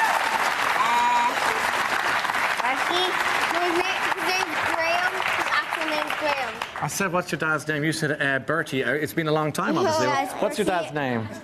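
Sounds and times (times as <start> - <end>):
studio audience applause: 0.0 - 7.4
speech: 6.8 - 11.4.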